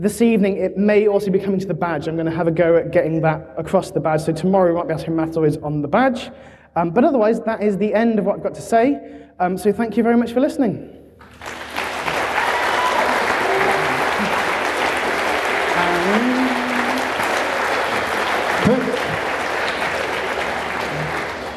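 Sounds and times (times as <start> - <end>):
speech: 0.0 - 11.6
audience applause: 11.2 - 21.5.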